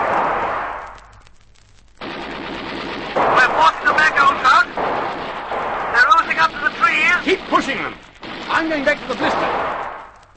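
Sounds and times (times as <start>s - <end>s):
machine-gun fire aimed at a man on the run: 2.0s - 10.3s.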